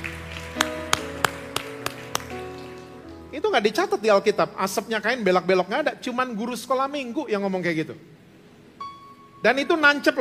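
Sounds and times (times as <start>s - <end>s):
audience clapping: 0.0s - 3.2s
speech: 3.4s - 8.2s, 9.4s - 10.2s.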